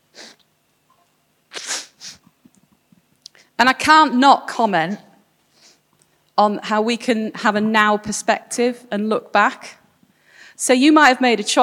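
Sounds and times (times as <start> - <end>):
sniffing: 0.1 - 0.4, 1.5 - 2.3
speech: 3.6 - 5.1, 6.4 - 9.8, 10.6 - 11.6.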